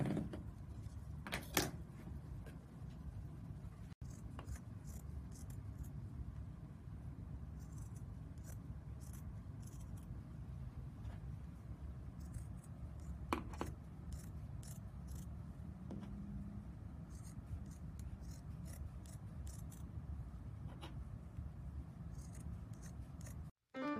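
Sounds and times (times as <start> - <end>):
low steady hum: 0.0 - 23.5
scissors cutting half-inch strips for a no-sew project: 4.0 - 6.0, 7.6 - 10.1, 12.2 - 15.4, 17.0 - 19.9, 22.1 - 23.5.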